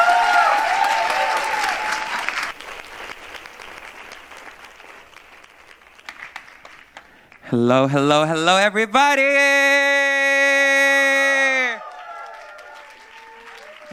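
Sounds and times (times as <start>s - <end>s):
audience applause: 0.0s - 8.2s, 10.3s - 13.9s
speech: 7.5s - 9.9s.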